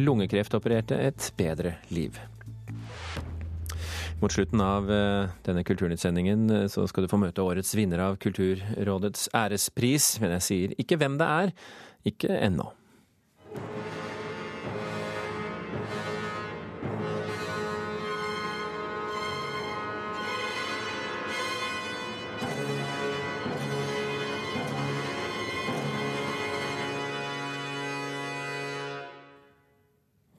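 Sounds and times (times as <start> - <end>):
speech: 0.0 - 3.3, 3.9 - 12.8
symphony orchestra playing ominous dark sustained chords: 13.4 - 29.4.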